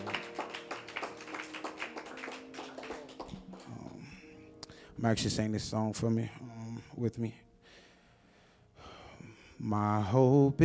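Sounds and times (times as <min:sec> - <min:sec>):
audience clapping: 0:00.0 - 0:04.2
speech: 0:05.0 - 0:07.5, 0:09.7 - 0:10.6.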